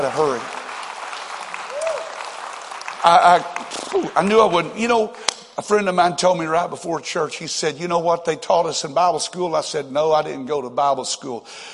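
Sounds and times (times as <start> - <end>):
audience clapping hands: 0.0 - 5.4
speech: 3.0 - 11.7.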